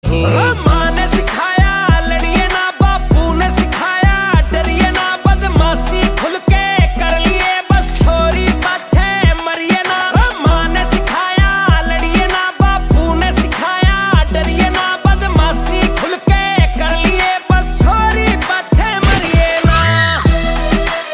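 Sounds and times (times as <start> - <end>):
Haryanvi song: 0.0 - 21.0.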